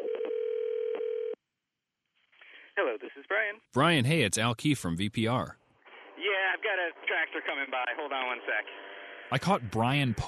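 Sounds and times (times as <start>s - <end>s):
telephone call ringing out, steady mid-low electronic tone: 0.0s - 1.4s
speech: 2.8s - 5.6s, 6.6s - 10.2s.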